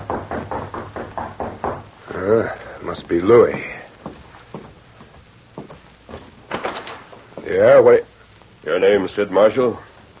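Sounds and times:
light knock on a door: 0.0 - 2.0
speech: 2.2 - 3.8, 7.5 - 8.1, 8.8 - 9.9.

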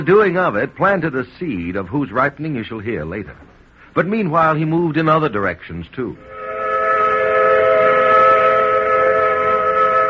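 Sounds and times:
speech: 0.0 - 6.4
cotton mill whistle in Carrollton blowing: 6.2 - 10.0.

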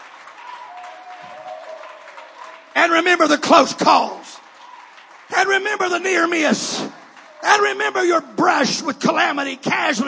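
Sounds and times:
audience hand clapping: 0.0 - 8.6
speech: 2.8 - 4.3, 5.5 - 10.0.

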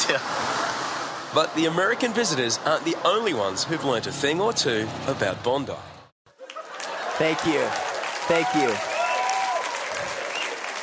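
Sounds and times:
speech: 0.1 - 0.6, 1.3 - 5.9, 7.2 - 8.9
audience applause: 6.4 - 10.8.

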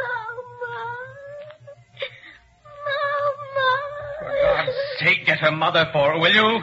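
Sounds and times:
wounded Greek child whimpering in a hospital: 0.7 - 5.0
speech: 5.0 - 6.6.

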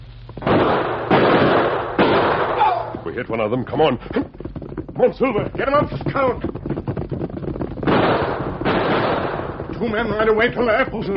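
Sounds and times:
gunshot effects fired from a clump of trees in a radio drama: 0.4 - 3.1, 5.6 - 11.0
speech: 3.1 - 4.4, 5.0 - 6.8, 9.8 - 11.1.

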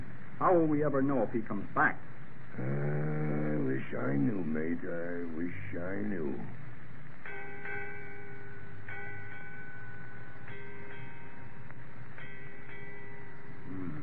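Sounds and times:
speech: 0.4 - 6.6
ship's bell ringing eight bells: 7.2 - 13.9.

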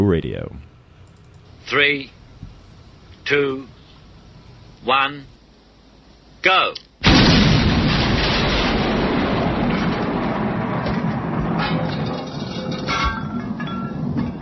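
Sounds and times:
speech: 0.0 - 0.7, 1.6 - 2.2, 3.3 - 3.8, 4.8 - 5.3, 6.4 - 6.8
explosion blowing doors off: 7.0 - 14.3
debris clattering: 7.1 - 14.3.

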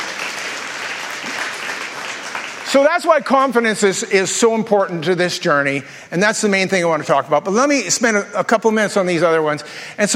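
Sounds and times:
audience clapping: 0.0 - 3.6
speech: 2.7 - 10.1.

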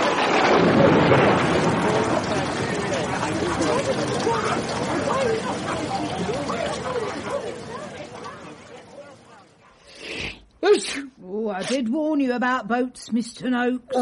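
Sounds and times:
loud booming thunder crash: 0.0 - 8.3
dense roar of wind and rain in a storm: 0.0 - 9.7
indistinct voices: 1.7 - 10.9
speech: 11.7 - 13.9.

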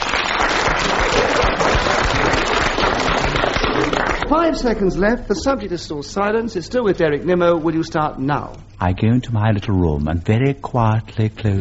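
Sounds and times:
audience applause: 0.0 - 4.6
speech: 4.3 - 11.5.

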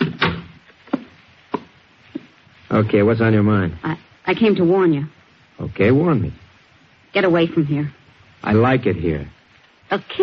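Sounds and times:
door being shut: 0.0 - 0.6
speech: 2.7 - 6.4, 7.1 - 10.2.

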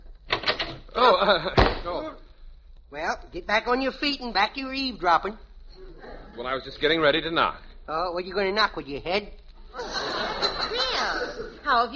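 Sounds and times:
door opening: 0.2 - 0.9
speech: 1.0 - 1.7, 3.3 - 5.5, 6.4 - 9.9, 11.7 - 11.9
laughter: 9.7 - 11.6.

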